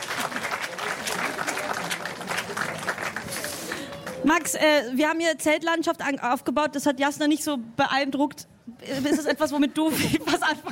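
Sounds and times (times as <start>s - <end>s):
audience applause: 0.0s - 4.5s
speech: 4.2s - 10.7s.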